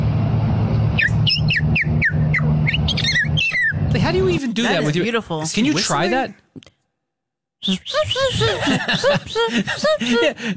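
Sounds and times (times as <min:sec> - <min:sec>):
steady low hum: 0:00.0 - 0:04.4
voice imitating a purple martin call: 0:01.0 - 0:04.0, 0:07.6 - 0:08.6
laughter: 0:03.4 - 0:06.1, 0:07.7 - 0:10.5
speech: 0:03.9 - 0:06.8, 0:07.6 - 0:10.5.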